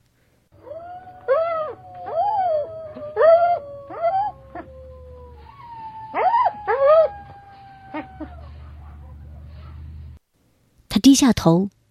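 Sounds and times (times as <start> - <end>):
low hum: 0.0 - 11.8
wolf cub howling: 0.6 - 9.4
speech: 11.0 - 11.8.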